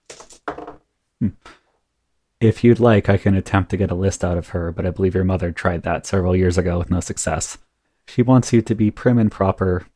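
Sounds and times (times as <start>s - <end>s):
dice rolling: 0.0s - 0.8s
speech: 1.2s - 1.6s, 2.4s - 9.9s.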